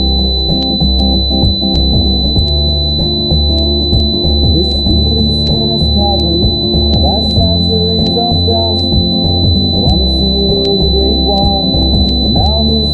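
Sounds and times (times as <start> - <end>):
sad robot low-passed tinnitus tone: 0.0 - 12.9.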